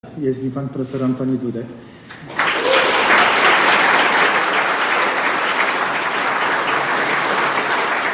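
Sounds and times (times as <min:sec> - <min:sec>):
speech: 0:00.2 - 0:02.3
audience applause: 0:02.3 - 0:08.1.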